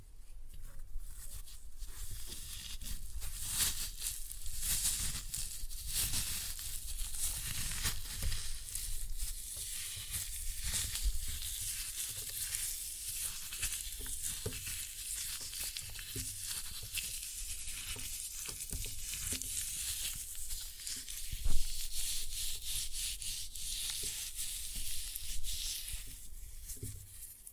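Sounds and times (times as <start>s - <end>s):
floral foam being crushed with crackle and hiss: 0.6s - 27.5s.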